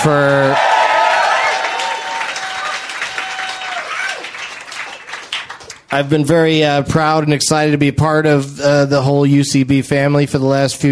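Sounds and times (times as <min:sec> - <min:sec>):
speech: 0:00.0 - 0:00.7, 0:05.9 - 0:10.9
vocal shout: 0:00.0 - 0:04.3
whoops and cheers: 0:00.0 - 0:04.5
crowd applause: 0:00.0 - 0:06.0.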